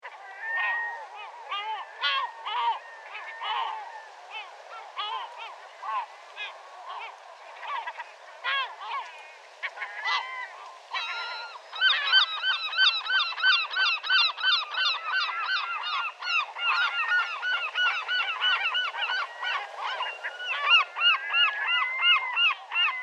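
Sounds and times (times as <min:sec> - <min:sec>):
seagulls at Neeltje Jans: 0:00.0 - 0:23.0.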